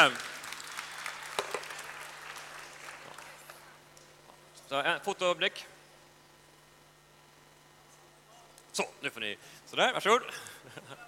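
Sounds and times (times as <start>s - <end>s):
speech: 0.0s - 0.2s, 4.7s - 5.8s, 8.8s - 10.5s
audience applause: 0.0s - 3.6s.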